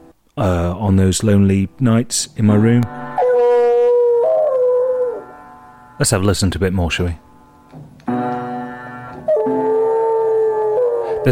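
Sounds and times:
speech: 0:00.4 - 0:03.0, 0:06.0 - 0:07.8
piano keys pressed by a dog: 0:02.4 - 0:11.3
dog howling: 0:03.2 - 0:05.4, 0:09.2 - 0:11.3.

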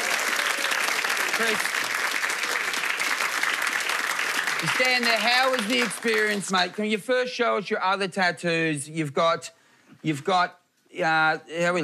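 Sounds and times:
audience applauding at a live show: 0:00.0 - 0:06.8
speech: 0:01.4 - 0:01.9, 0:04.6 - 0:11.8.

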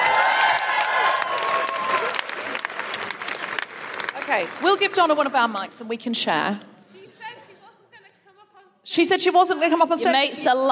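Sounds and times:
audience applause: 0:00.0 - 0:05.6
speech: 0:04.3 - 0:06.7, 0:08.9 - 0:10.7.

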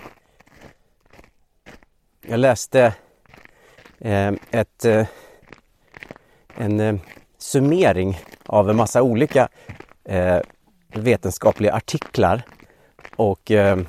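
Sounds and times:
footsteps crunching in snow: 0:00.0 - 0:13.8
speech: 0:02.3 - 0:03.0, 0:04.0 - 0:05.2, 0:06.6 - 0:12.5, 0:13.2 - 0:13.8.

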